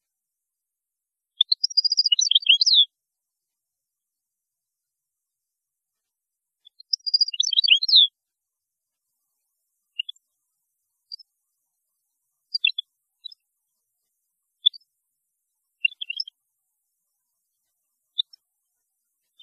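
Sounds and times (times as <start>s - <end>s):
European goldfinch twittering song: 1.4s - 2.9s, 6.7s - 8.1s, 10.0s - 10.2s, 12.5s - 13.4s, 15.8s - 16.3s.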